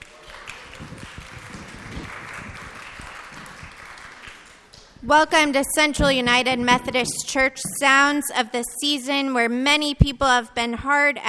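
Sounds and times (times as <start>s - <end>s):
audience clapping at a church holiday concert: 0.0s - 5.0s
speech: 5.0s - 11.2s.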